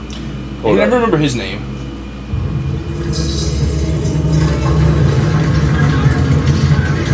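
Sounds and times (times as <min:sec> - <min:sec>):
speech: 0:00.6 - 0:01.8
cave-in deep rumbling roar: 0:02.3 - 0:07.1.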